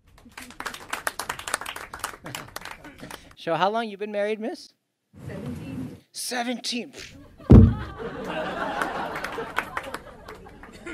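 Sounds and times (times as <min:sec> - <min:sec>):
audience members clapping: 0:00.0 - 0:03.4, 0:07.8 - 0:10.8
speech: 0:00.2 - 0:00.6, 0:03.4 - 0:04.8, 0:06.3 - 0:07.2
laughter: 0:07.2 - 0:10.9.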